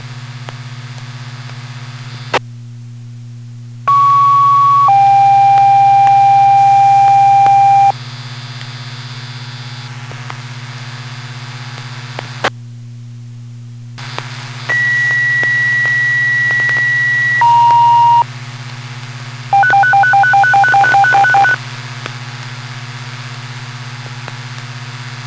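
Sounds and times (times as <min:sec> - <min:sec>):
fire department general alarm tones: 0:03.9 - 0:07.9, 0:14.7 - 0:18.3, 0:19.5 - 0:21.6.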